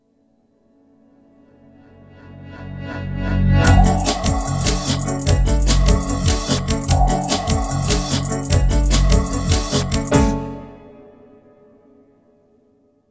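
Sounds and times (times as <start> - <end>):
minimal advertising music: 3.6 - 11.0.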